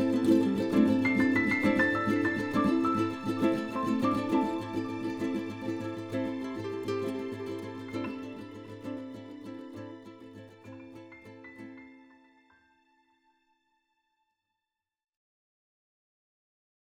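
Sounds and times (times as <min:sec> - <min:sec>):
strings: 0:00.0 - 0:13.2.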